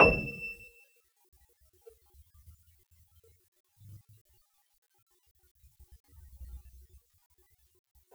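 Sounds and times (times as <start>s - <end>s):
Wurly upright soft E6 note: 0.0s - 0.5s.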